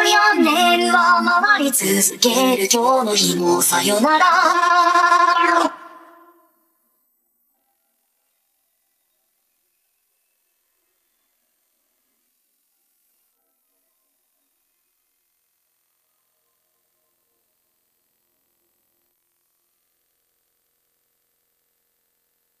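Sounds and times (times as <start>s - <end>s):
person singing: 0.0s - 6.5s.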